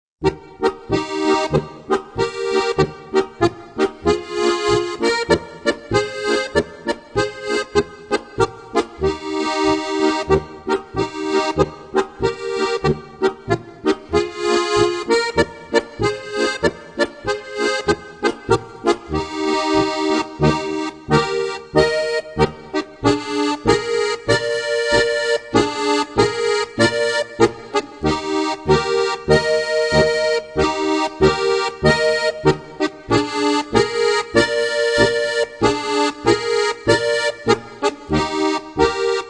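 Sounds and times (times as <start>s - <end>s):
polka music: 0.2s - 39.2s.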